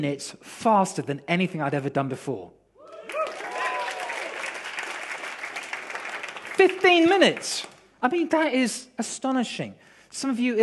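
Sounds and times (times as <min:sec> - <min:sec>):
speech: 0:00.0 - 0:02.6, 0:06.6 - 0:10.6
audience clapping: 0:02.9 - 0:08.0.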